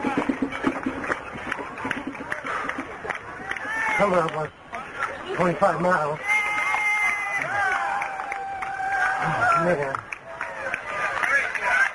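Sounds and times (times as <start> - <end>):
marathon crowd cheering runners: 0.0 - 11.9
speech: 4.0 - 4.6, 5.3 - 6.3, 9.6 - 10.0.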